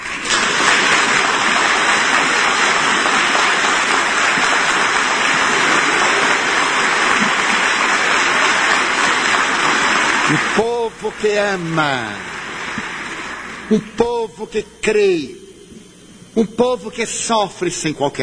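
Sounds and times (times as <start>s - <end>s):
audience applause: 0.0s - 14.0s
speech: 11.1s - 12.3s, 13.7s - 15.4s, 16.4s - 18.2s.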